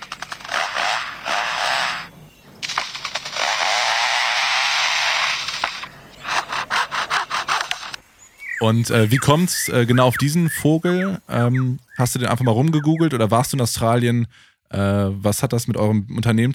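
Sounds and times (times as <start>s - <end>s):
foresters' chainsaws working: 0.0s - 7.9s
speech: 8.6s - 16.5s.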